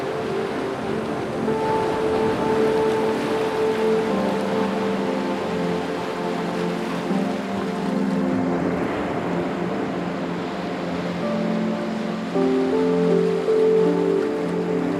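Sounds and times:
gentle music with sustained, layered tones: 0:00.0 - 0:14.9
ocean waves: 0:00.0 - 0:14.9.

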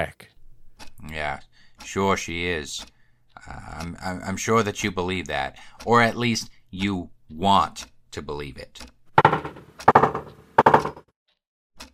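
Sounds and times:
speech: 0:00.0 - 0:00.3, 0:01.0 - 0:09.6
knocking on a door: 0:09.2 - 0:11.1.

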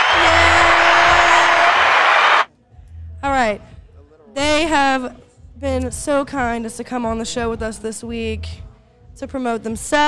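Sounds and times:
round of applause: 0:00.0 - 0:02.5
speech: 0:04.6 - 0:10.0.

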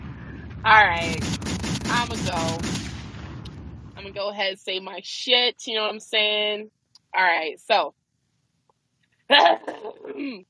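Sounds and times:
speech: 0:00.6 - 0:02.9, 0:04.0 - 0:08.0, 0:09.3 - 0:10.4
man clearing his throat: 0:09.4 - 0:10.4.

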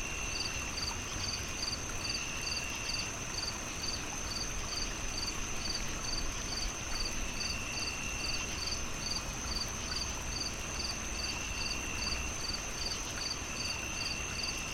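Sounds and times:
relaxing nighttime nature ambience: 0:00.0 - 0:14.7.

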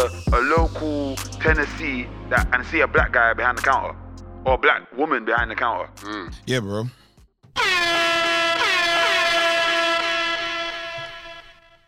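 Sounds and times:
speech: 0:00.0 - 0:07.0, 0:07.6 - 0:08.3
air horn blast: 0:07.6 - 0:11.8.

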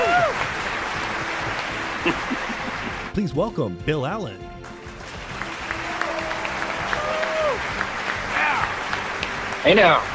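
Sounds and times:
whoops and shouting voices: 0:00.0 - 0:00.4, 0:05.7 - 0:07.6, 0:08.3 - 0:08.8
audience applause at a live season finale show: 0:00.0 - 0:03.2, 0:04.6 - 0:10.1
laughter: 0:01.7 - 0:03.1
speech: 0:03.2 - 0:04.6, 0:09.6 - 0:10.1.

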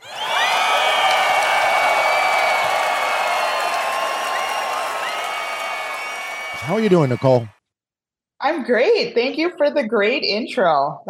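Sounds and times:
crowd applause welcoming a guest at a live fishing show: 0:00.0 - 0:07.5
speech: 0:06.7 - 0:07.6, 0:08.4 - 0:11.0.

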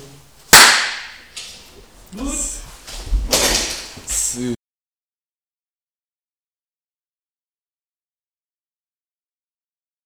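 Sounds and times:
single hand clap for sync: 0:00.5 - 0:04.4
speech: 0:04.4 - 0:04.6.

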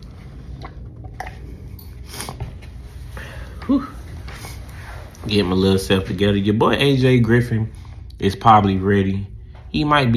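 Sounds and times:
person sipping a drink: 0:00.0 - 0:02.6
speech: 0:03.7 - 0:04.0, 0:05.2 - 0:10.1.

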